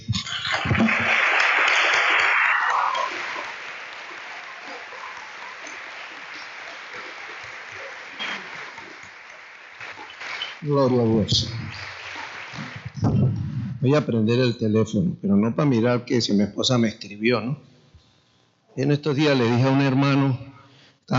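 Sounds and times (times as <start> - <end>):
audience applauding: 0.0 - 13.2
speech: 10.7 - 11.8, 13.8 - 17.7, 18.8 - 20.5.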